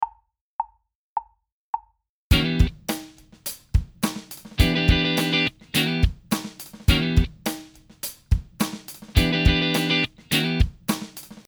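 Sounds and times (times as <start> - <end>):
minor seventh chords: 2.3 - 2.9, 4.6 - 6.2, 6.9 - 7.4, 9.2 - 10.8.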